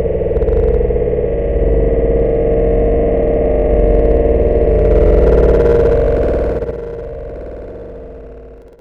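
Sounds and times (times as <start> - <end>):
spaceship passing: 0.1 - 8.7.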